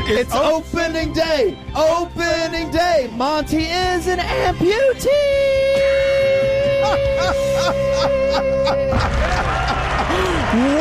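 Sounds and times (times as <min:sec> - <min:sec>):
speech: 0:00.1 - 0:10.7
laughter: 0:06.7 - 0:10.7
people clapping: 0:08.8 - 0:10.7.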